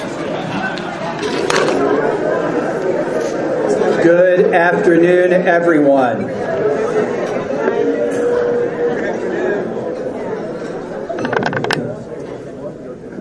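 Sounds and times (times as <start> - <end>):
murmur of voices: 0.0 - 13.1
speech: 4.0 - 6.4.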